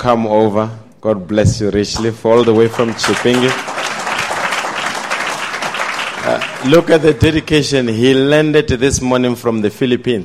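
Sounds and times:
speech: 0.0 - 3.8, 6.3 - 10.2
audience applause: 2.4 - 7.2.

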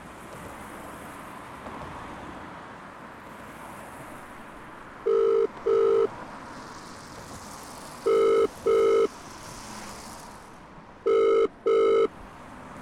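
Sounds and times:
telephone ringing: 5.0 - 6.1, 8.0 - 9.1, 11.1 - 12.1.

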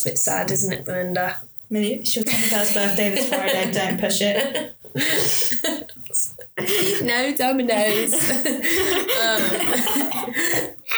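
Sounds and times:
speech: 0.0 - 10.9
laughter: 2.3 - 10.9
person coughing and choking on air: 4.4 - 7.2, 7.8 - 10.9
throat clearing: 4.8 - 7.2, 7.8 - 10.9.

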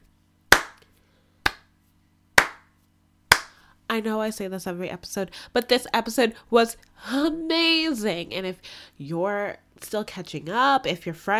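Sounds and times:
slow hand claps: 0.5 - 0.8, 1.5 - 1.7, 2.4 - 2.7, 3.3 - 3.6
speech: 4.0 - 11.3.

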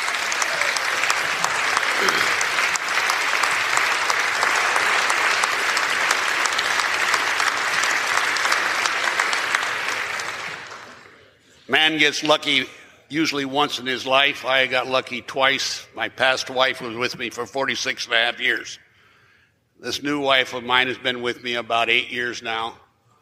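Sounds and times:
audience applause in a state House chamber: 0.0 - 11.1
speech: 11.9 - 18.8, 19.8 - 22.8.

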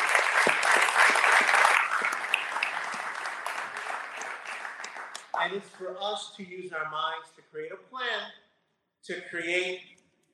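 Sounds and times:
audience applause: 0.0 - 6.0
speech: 5.5 - 8.4, 9.0 - 10.3.

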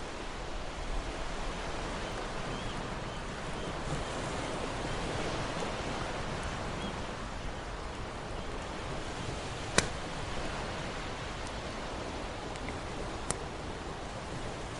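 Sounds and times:
ocean waves lapping against the shore: 0.0 - 14.7
campfire popping beside the sea: 9.6 - 10.2.

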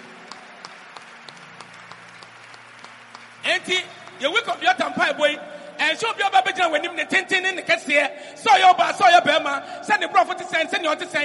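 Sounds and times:
audience clapping: 0.0 - 7.4
speech: 3.5 - 11.2.

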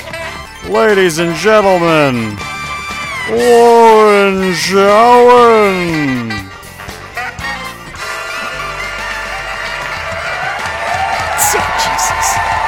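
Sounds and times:
speech: 0.6 - 2.5, 3.3 - 6.5
crowd clapping and cheering: 8.1 - 12.6
high whoops and shouts: 10.4 - 12.6.

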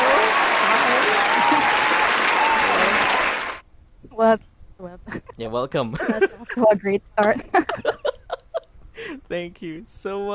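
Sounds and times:
laughter: 0.0 - 3.1, 5.9 - 9.2
audience applause welcoming a guest: 0.0 - 3.6
speech: 4.2 - 8.0, 9.0 - 10.3.

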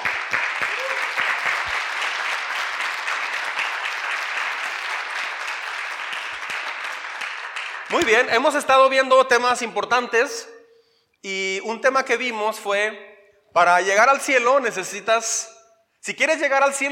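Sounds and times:
audience applause: 0.0 - 8.4
speech: 7.9 - 10.6, 11.2 - 16.8.

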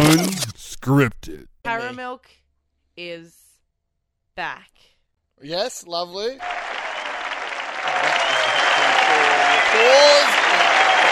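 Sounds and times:
speech: 0.9 - 2.4, 3.0 - 3.4, 4.4 - 6.7, 9.7 - 10.4
audience applause: 6.4 - 11.1.

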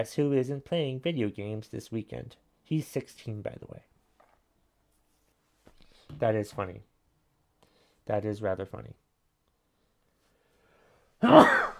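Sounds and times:
speech: 0.0 - 3.9, 6.1 - 6.9, 8.1 - 9.0, 11.2 - 11.6
person sneezing: 11.2 - 11.7.

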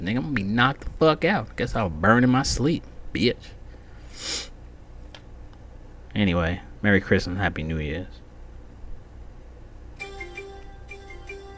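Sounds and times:
speech: 0.0 - 3.6, 4.2 - 4.5, 6.2 - 8.2
low hum: 0.0 - 11.5
fantasy sports app alert on phone: 10.0 - 11.5.

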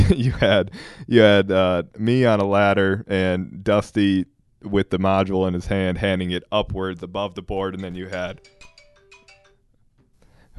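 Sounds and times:
speech: 0.1 - 8.6
phone ringtone: 7.8 - 9.8.

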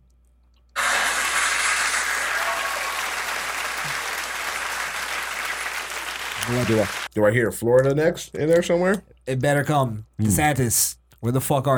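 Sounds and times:
applause: 0.8 - 7.1
speech: 6.5 - 11.7.

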